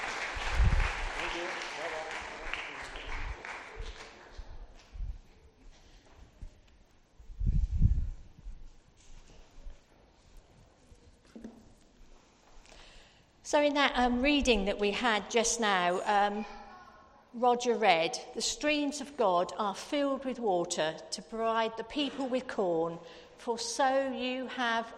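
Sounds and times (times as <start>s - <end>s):
audience clapping: 0.0s - 4.6s
speech: 13.5s - 16.6s, 17.4s - 24.9s.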